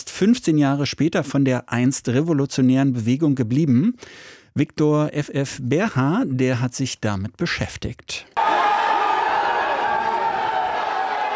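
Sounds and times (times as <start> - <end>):
speech: 0.0 - 8.4
crowd cheering outside a courthouse in Los Angeles: 8.4 - 11.3.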